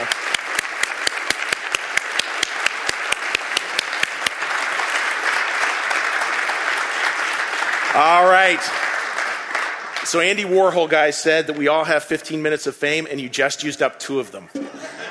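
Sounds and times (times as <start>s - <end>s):
studio audience standing ovation applause: 0.0s - 11.1s
speech: 8.0s - 8.9s, 10.1s - 14.6s
laughter: 14.5s - 15.1s.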